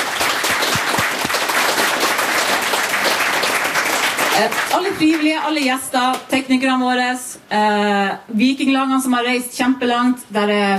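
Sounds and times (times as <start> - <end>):
audience applause: 0.0 - 5.3
speech: 4.4 - 10.7.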